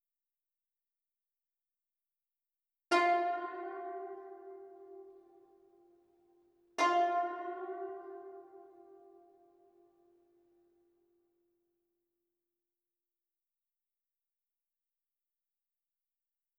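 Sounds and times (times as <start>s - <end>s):
guzheng melody in C minor: 2.9s - 6.1s, 6.8s - 10.2s.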